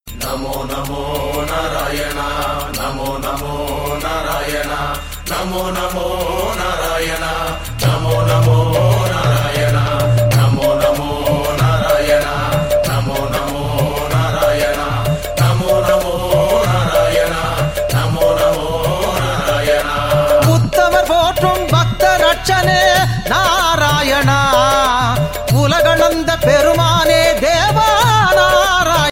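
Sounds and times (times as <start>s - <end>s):
Hindu devotional music: 0.1s - 29.1s.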